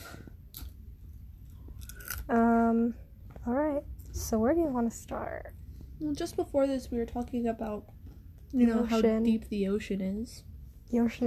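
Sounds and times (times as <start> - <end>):
crunching barbecue potato chips: 1.5 - 2.3
speech: 2.3 - 11.2.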